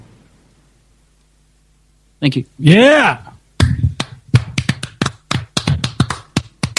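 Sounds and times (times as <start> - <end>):
speech: 2.2 - 3.3
person clapping hands: 3.6 - 6.7.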